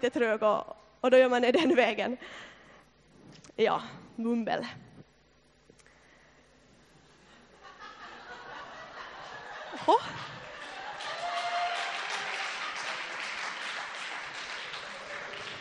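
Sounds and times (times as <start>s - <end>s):
speech: 0.0s - 2.5s, 3.3s - 4.8s, 9.8s - 10.4s
laughter: 7.5s - 15.6s
applause: 9.9s - 15.6s.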